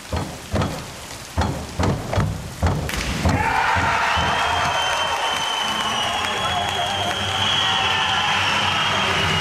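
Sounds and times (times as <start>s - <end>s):
rhythmic claps or thumps: 0.0s - 9.3s
crowd cheering and applause at a diving event: 2.9s - 9.3s.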